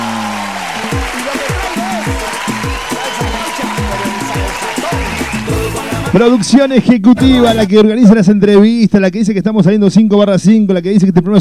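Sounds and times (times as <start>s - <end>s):
applause: 0.0s - 6.7s
speech: 6.1s - 11.4s.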